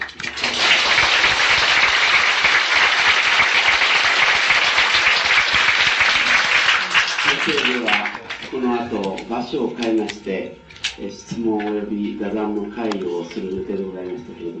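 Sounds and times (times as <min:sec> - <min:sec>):
audience applause: 0:00.0 - 0:08.6
speech: 0:09.4 - 0:14.5.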